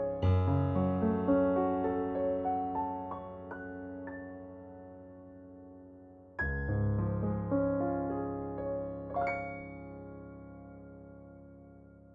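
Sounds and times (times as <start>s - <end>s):
concert grand piano: 0.0s - 12.1s.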